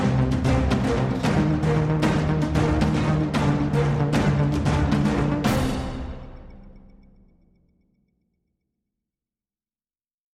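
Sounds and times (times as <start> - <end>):
music track at 114 bpm: 0.0 - 7.6.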